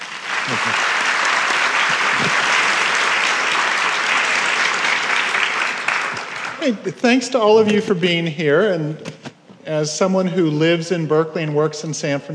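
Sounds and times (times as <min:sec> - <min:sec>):
audience at an architecture talk applauding to welcome the speaker: 0:00.0 - 0:07.7
speech: 0:00.5 - 0:00.9, 0:06.6 - 0:12.3.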